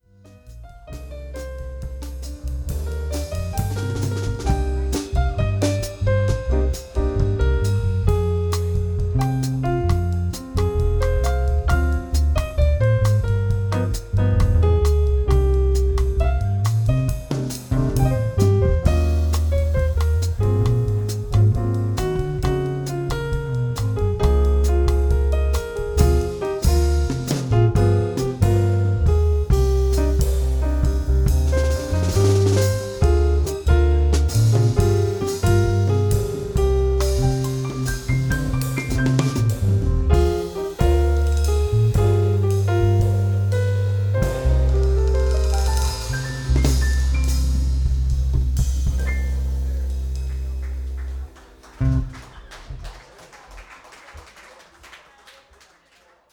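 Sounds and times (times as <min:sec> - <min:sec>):
piano: 0:00.0 - 0:53.5.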